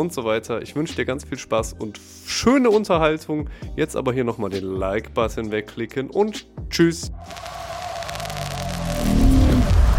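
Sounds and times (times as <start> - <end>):
speech: 0.0 - 7.6
car driving with engine and road rumble: 7.2 - 9.9.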